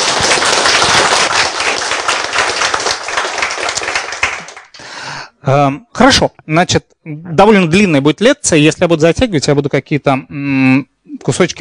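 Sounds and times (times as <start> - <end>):
audience applause: 0.0 - 4.9
speech: 5.5 - 11.6.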